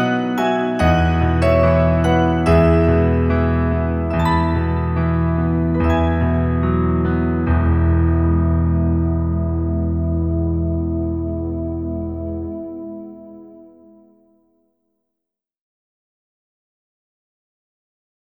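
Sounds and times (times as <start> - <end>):
piano: 0.0 - 14.3.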